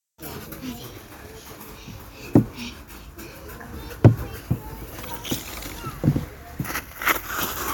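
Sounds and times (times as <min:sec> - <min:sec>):
slide: 0:04.2 - 0:07.7.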